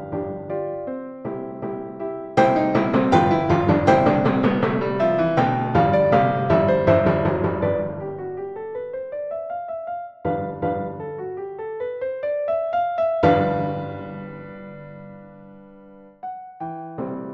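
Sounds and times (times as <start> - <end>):
piano: 0.0 - 17.3
timbales: 2.4 - 8.6.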